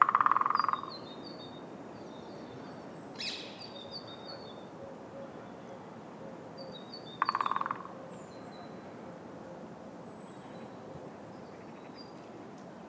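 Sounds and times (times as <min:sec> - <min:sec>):
woodpecker in South East London: 0:00.0 - 0:01.0, 0:07.2 - 0:08.0.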